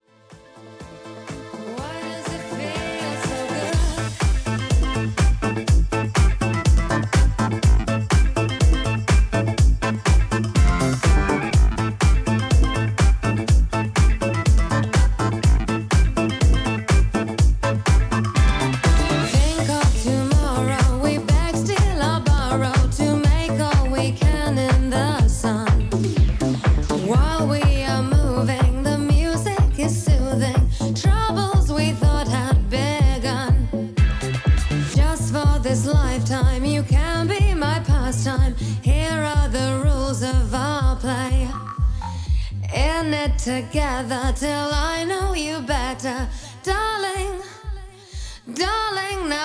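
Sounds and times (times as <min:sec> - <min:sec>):
disco music: 0:00.0 - 0:49.4.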